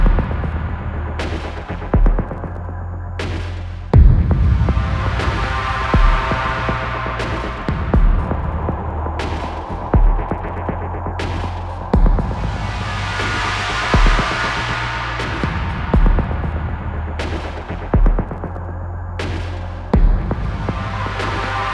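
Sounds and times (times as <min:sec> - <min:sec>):
low glitchy slap: 0:00.0 - 0:21.7.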